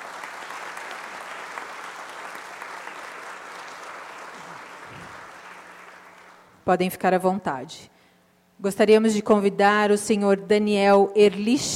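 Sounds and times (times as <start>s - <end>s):
audience applause: 0.0s - 6.5s
speech: 6.7s - 8.0s, 8.6s - 11.7s.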